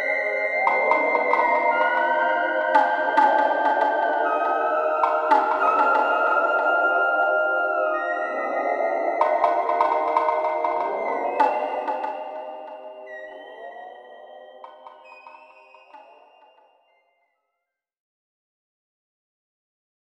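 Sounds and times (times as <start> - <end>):
five-tone melody: 0.2 - 15.9.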